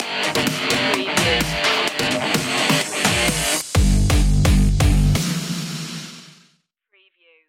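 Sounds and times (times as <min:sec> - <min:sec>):
rock music stinger: 0:00.0 - 0:05.4.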